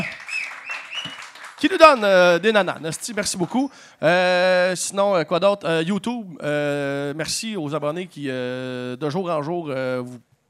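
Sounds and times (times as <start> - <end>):
audience applause: 0.0 - 3.2
speech: 1.6 - 10.3.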